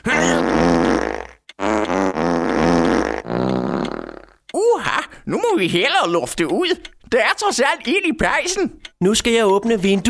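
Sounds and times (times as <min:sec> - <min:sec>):
fart: 0:00.1 - 0:04.4
speech: 0:05.5 - 0:10.0.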